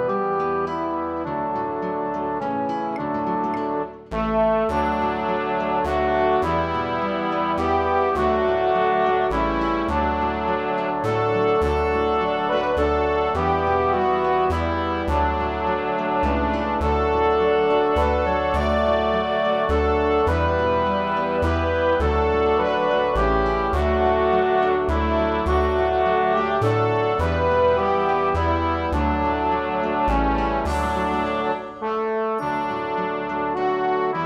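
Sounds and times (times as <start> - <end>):
instrumental hymn round: 0.2 - 34.0.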